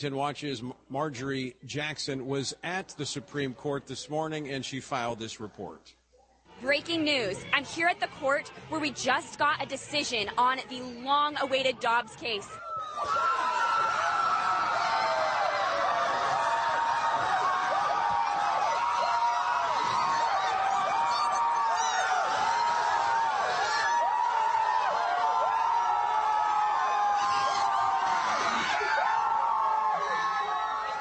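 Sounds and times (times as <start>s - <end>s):
speech: 0.0s - 6.0s, 6.6s - 13.4s
crowd celebrating outside the court: 11.6s - 30.9s.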